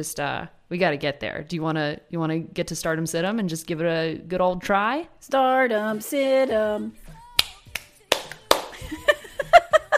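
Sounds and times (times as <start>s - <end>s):
speech: 0.0s - 7.0s
sharp hand claps in a steady rhythm: 7.4s - 9.0s
laughter: 8.7s - 9.9s.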